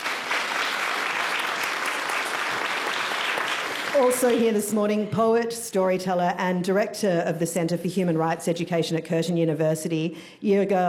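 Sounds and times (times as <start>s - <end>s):
audience applause: 0.0s - 4.6s
speech: 3.9s - 10.8s.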